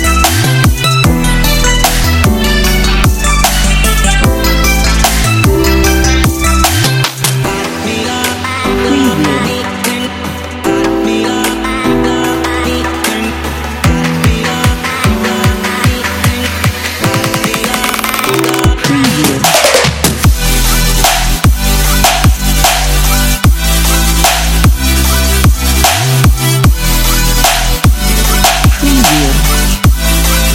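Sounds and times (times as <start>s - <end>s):
future bass music: 0.0s - 30.5s.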